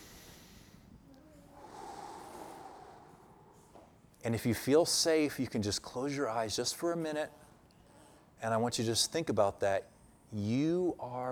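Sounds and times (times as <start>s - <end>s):
deep breath drawn in and let out: 0.0s - 4.2s
speech: 4.2s - 7.4s, 8.4s - 11.3s.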